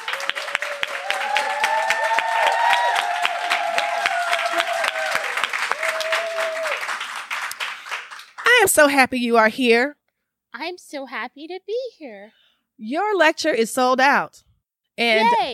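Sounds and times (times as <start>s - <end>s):
crowd applause: 0.0s - 8.7s
speech: 8.8s - 10.0s, 10.7s - 15.5s.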